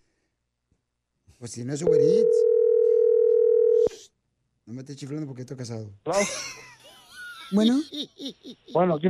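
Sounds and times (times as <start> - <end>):
speech: 1.4 - 2.6, 4.7 - 6.7, 7.5 - 9.0
telephone dial tone while calling: 2.4 - 3.9
laughter: 6.2 - 9.0.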